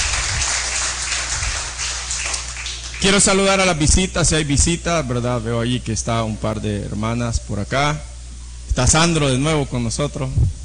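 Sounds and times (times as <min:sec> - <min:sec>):
church congregation applauding after the sermon: 0:00.0 - 0:03.8
speech: 0:03.0 - 0:08.1, 0:08.8 - 0:10.6.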